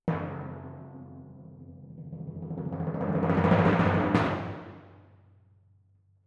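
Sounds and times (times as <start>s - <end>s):
timpani in F: 0.0s - 5.0s.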